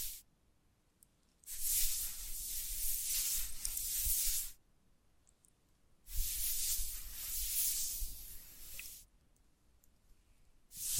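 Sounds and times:
scratching and tracing strokes: 0:00.0 - 0:00.2, 0:01.5 - 0:04.6, 0:06.1 - 0:09.1, 0:10.7 - 0:10.9.

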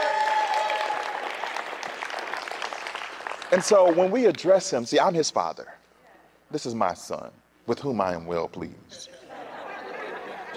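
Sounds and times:
audience clapping: 0:00.0 - 0:04.6
speech: 0:03.5 - 0:05.8, 0:06.5 - 0:09.2
laughter: 0:09.0 - 0:10.5.

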